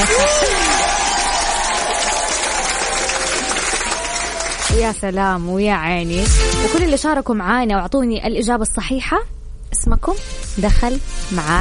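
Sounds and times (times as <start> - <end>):
crowd applause: 0.0 - 4.8
speech: 4.8 - 11.5.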